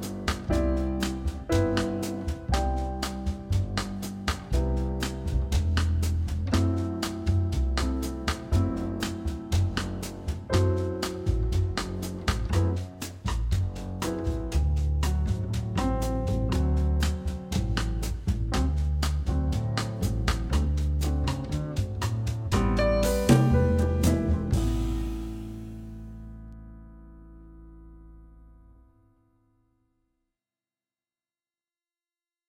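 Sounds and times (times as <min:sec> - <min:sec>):
jazz guitar backing track: 0:00.0 - 0:27.7.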